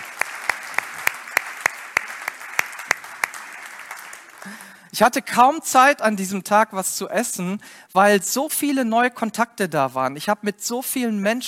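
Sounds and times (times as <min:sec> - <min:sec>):
hand clapping: 0:00.0 - 0:04.8
speech: 0:04.4 - 0:11.4.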